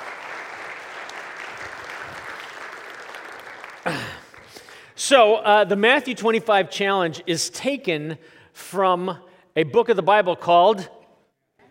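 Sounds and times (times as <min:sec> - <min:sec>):
audience round of applause: 0:00.0 - 0:04.9
speech: 0:05.0 - 0:11.0.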